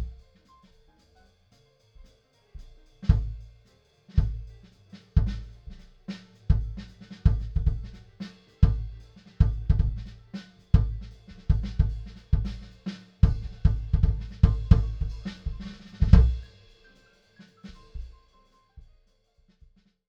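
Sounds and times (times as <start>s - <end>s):
unprocessed kick drum: 0.0s - 0.3s, 3.0s - 3.5s, 4.2s - 4.6s, 5.2s - 5.8s, 6.5s - 8.0s, 8.6s - 16.5s.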